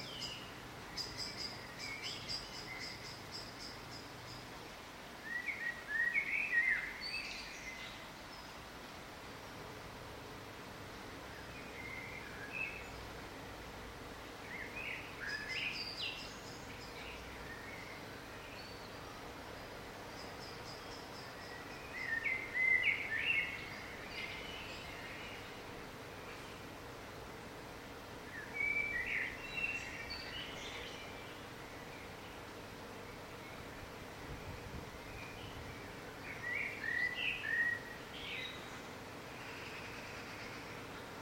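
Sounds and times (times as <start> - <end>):
birdsong: 0.0 - 8.7, 11.1 - 41.2.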